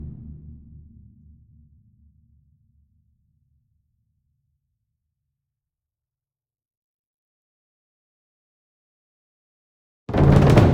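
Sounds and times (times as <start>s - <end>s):
concert bass drum roll: 10.2s - 10.7s.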